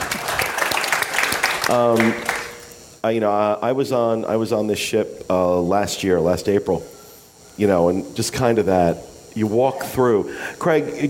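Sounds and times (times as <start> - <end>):
few people clapping: 0.0 - 2.6
speech: 1.7 - 2.3, 3.0 - 7.0, 7.6 - 11.0.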